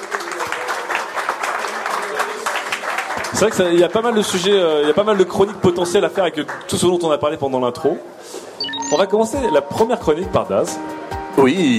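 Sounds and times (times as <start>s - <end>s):
audience applause: 0.0s - 6.7s
speech: 3.3s - 8.3s, 8.9s - 11.7s.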